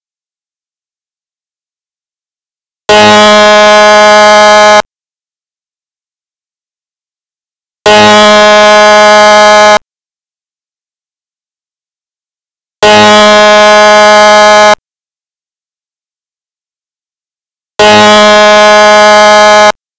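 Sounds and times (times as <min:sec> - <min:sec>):
dam break alert: 0:02.9 - 0:04.9, 0:07.9 - 0:09.8, 0:12.9 - 0:14.8, 0:17.8 - 0:19.8.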